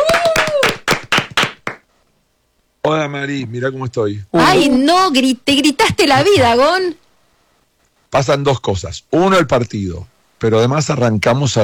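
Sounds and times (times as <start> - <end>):
hand claps greeting a guest arriving in a studio: 0.0 - 1.9
speech: 2.8 - 7.0, 8.1 - 11.6.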